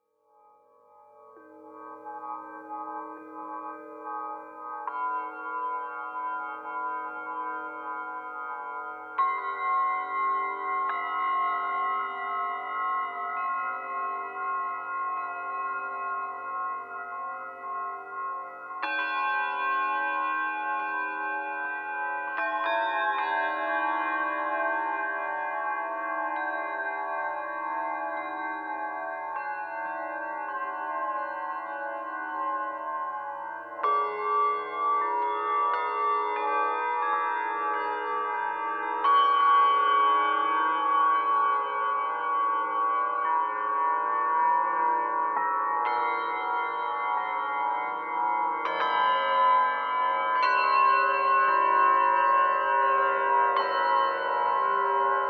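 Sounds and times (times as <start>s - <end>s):
bells in space: 0.3s - 55.2s.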